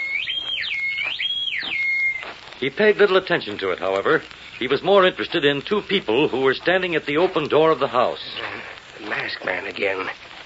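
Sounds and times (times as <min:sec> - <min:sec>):
whistle in the night: 0:00.0 - 0:02.2
speech: 0:02.6 - 0:10.2.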